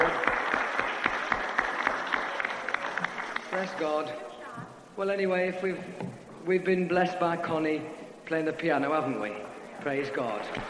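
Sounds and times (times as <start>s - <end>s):
audience applause: 0.0s - 4.2s, 10.1s - 10.6s
speech: 3.6s - 10.6s.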